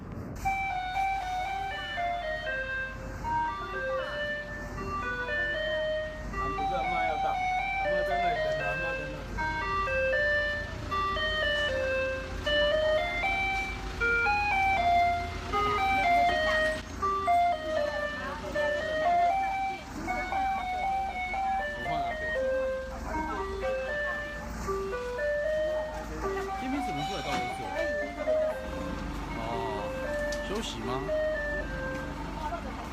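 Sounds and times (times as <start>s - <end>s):
garbage truck playing a jingle melody: 0.0s - 32.9s.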